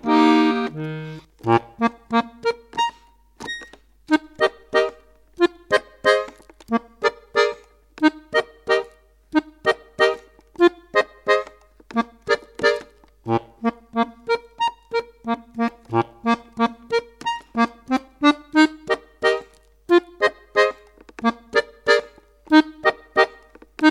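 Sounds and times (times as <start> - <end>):
solo accordion: 0.0 - 23.9.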